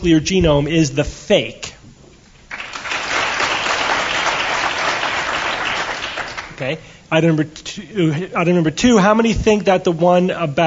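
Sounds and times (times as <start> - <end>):
speech: 0.0 - 1.7, 6.6 - 10.6
crowd applause: 2.5 - 6.7.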